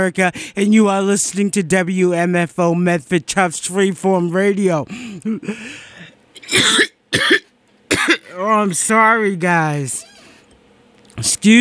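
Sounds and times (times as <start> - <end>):
speech: 0.0 - 10.1, 11.2 - 11.6
person coughing from something stuck in the throat: 6.4 - 8.4.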